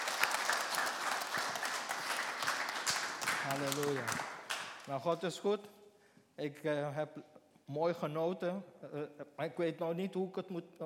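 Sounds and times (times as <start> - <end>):
audience applause: 0.0 - 4.9
speech: 3.4 - 4.3, 4.9 - 5.8, 6.4 - 10.8.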